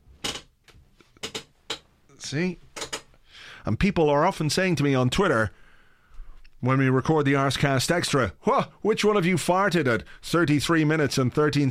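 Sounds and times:
office chair creaking: 0.1 - 1.9, 2.7 - 3.2
speech: 2.2 - 2.6, 3.4 - 5.6, 6.6 - 11.7.

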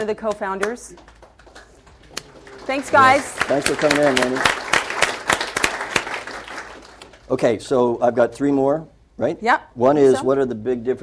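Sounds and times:
speech: 0.0 - 1.1, 2.7 - 4.6, 7.3 - 11.0
few hands clapping: 0.0 - 7.3.

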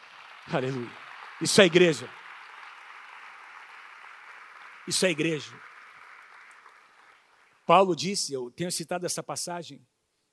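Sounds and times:
audience applause: 0.0 - 7.7
speech: 0.5 - 2.2, 4.9 - 5.7, 7.7 - 9.9.

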